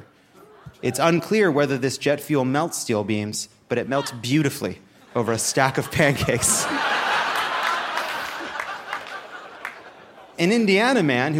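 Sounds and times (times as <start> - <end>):
speech: 0.8 - 7.0, 10.4 - 11.3
laughter: 3.9 - 10.7
studio audience applause: 6.4 - 10.3.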